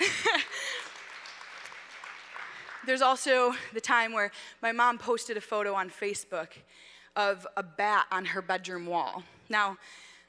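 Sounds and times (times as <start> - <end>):
audience applause: 0.3 - 2.9
speech: 2.9 - 10.1.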